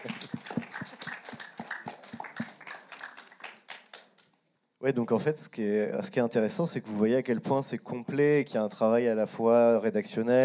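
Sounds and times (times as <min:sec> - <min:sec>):
applause: 0:00.0 - 0:04.4
speech: 0:04.8 - 0:10.4.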